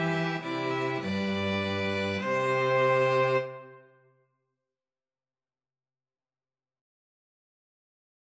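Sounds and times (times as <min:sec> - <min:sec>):
cello: 0:00.0 - 0:04.0
two violins: 0:00.0 - 0:04.0.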